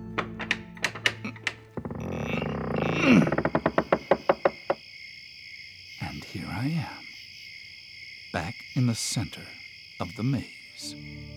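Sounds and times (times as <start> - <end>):
trap door mechanism thunking, grinding and knocking: 0.0 - 4.8
speech: 3.0 - 3.2, 8.8 - 11.3.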